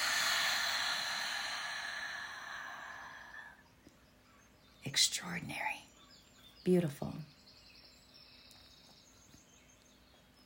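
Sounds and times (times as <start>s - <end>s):
deep breath released during a guided breathing exercise: 0.0s - 3.6s
speech: 4.9s - 5.9s, 6.6s - 7.3s.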